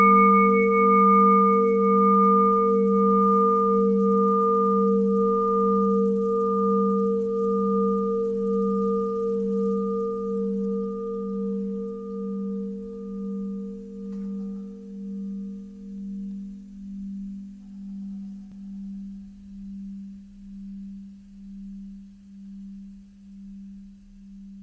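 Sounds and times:
long bell ringing: 0:00.0 - 0:11.4.

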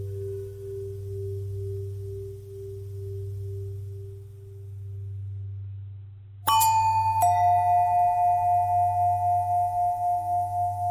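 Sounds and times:
long bell ringing: 0:06.5 - 0:10.8.

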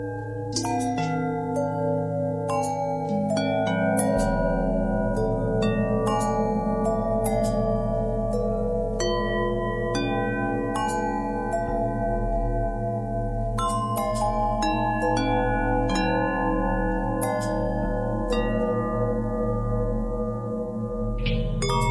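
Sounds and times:
long bell with bend and twist: 0:00.0 - 0:21.9.

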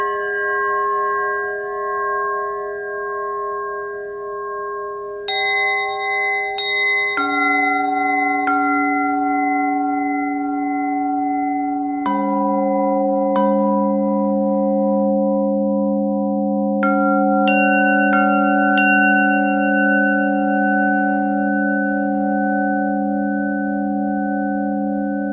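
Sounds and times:
bells: 0:00.0 - 0:25.3.

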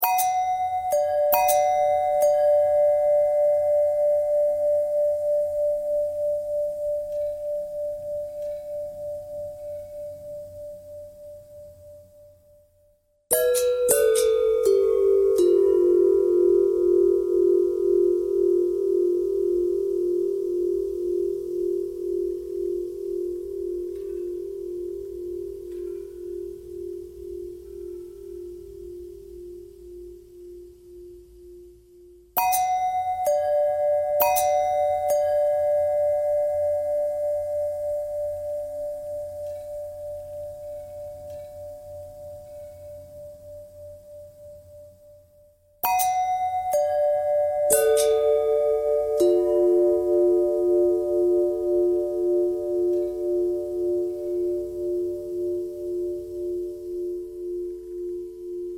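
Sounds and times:
long pentatonic bell tones: 0:00.0 - 0:12.5, 0:13.3 - 0:58.7.

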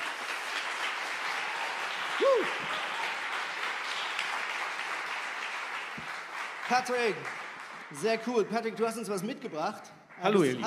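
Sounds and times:
audience applause: 0:00.0 - 0:08.3
speech: 0:02.2 - 0:02.9, 0:06.7 - 0:10.6.

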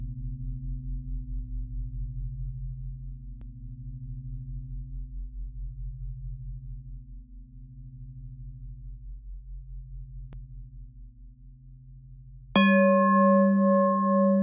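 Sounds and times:
bell: 0:12.6 - 0:14.4.

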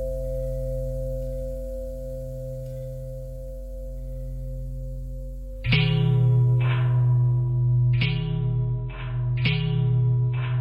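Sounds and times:
longbell bells ringing: 0:00.0 - 0:10.5.

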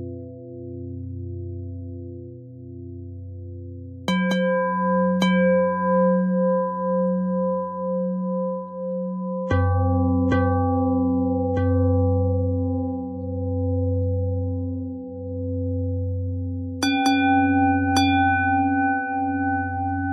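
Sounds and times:
pentatonic bell melody: 0:04.1 - 0:15.2, 0:16.5 - 0:20.1.

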